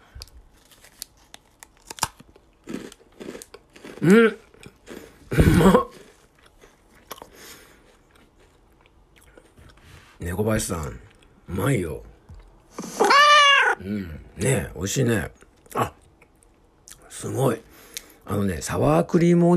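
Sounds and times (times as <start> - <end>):
eating crunchy rice cracker snack: 0.1 - 9.8
speech: 4.0 - 4.4, 5.6 - 5.9, 10.5 - 12.1, 13.9 - 15.9, 18.4 - 19.5.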